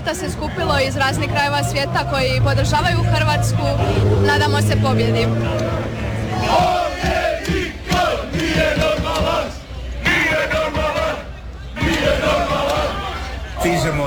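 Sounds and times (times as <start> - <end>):
speech: 0.0 - 7.2, 13.6 - 14.0
large crowd of football fans cheering and chanting: 0.0 - 14.0.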